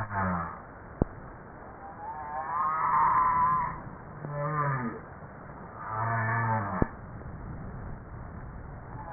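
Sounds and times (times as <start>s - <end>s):
humpback whale harmonic moans: 1.8s - 5.0s, 5.8s - 6.9s, 8.9s - 9.1s.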